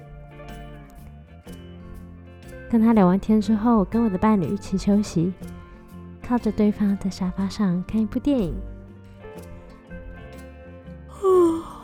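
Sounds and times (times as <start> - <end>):
speech: 2.7 - 5.5, 6.3 - 8.7
person yawning: 11.1 - 11.8.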